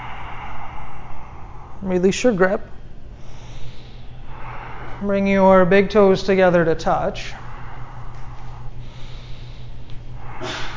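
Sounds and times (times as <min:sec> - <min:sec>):
low steady hum: 0:00.0 - 0:10.7
soft noisy breathing: 0:00.0 - 0:10.7
speech: 0:01.8 - 0:02.8, 0:05.0 - 0:07.4
person sneezing: 0:10.4 - 0:10.7.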